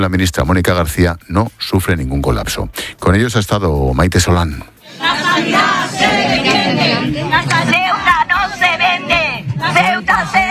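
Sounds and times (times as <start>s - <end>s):
speech: 0.0s - 7.2s
protest crowd shouting outside Hospital Universitario de Ceuta: 4.9s - 10.4s.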